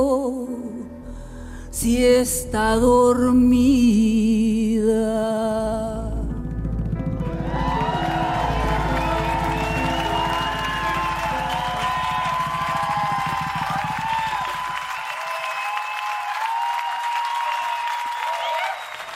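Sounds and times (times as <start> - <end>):
speech: 1.8 - 5.9
thunderous applause at live concert: 6.3 - 19.1.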